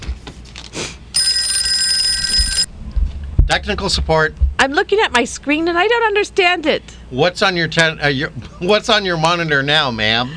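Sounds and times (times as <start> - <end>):
telephone ringing: 1.2 - 2.7
speech: 3.5 - 10.3.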